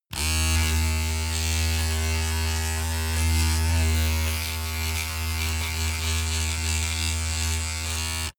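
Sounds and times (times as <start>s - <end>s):
electric razor running under load: 0.1s - 8.3s.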